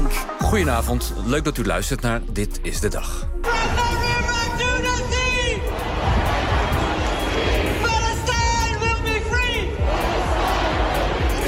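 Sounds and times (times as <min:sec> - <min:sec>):
speech: 0:00.1 - 0:03.8
roaring crowd noise: 0:03.6 - 0:11.4
large crowd chanting slogans at a protest: 0:05.5 - 0:11.4.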